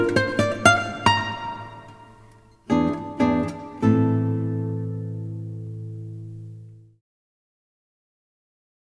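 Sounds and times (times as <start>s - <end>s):
solo guitar: 0.0s - 7.0s.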